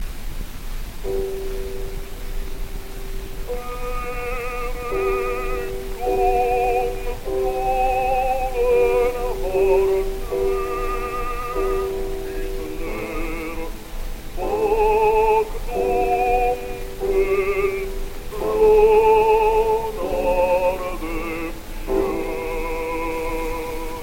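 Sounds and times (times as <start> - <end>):
gramophone playing: 1.0 - 24.0.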